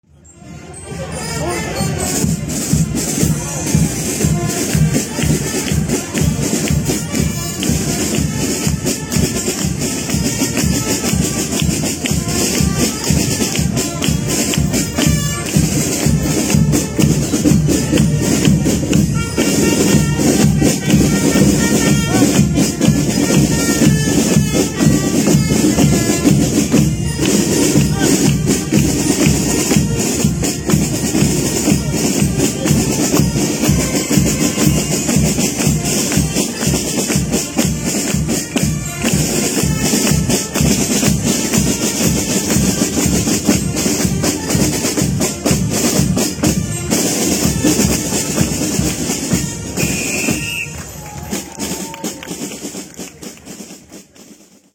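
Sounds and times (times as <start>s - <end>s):
polka music: 0.1s - 54.7s.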